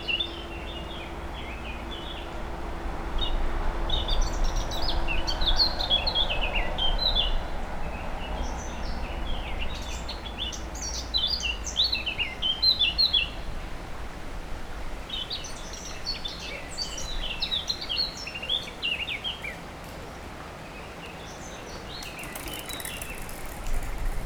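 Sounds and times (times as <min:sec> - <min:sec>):
warbler song: 0:00.0 - 0:02.4, 0:03.2 - 0:13.8, 0:15.1 - 0:24.1.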